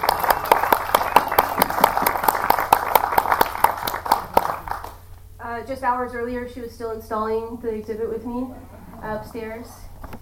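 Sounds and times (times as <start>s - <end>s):
audience applause: 0.0s - 5.0s
speech: 5.6s - 9.9s.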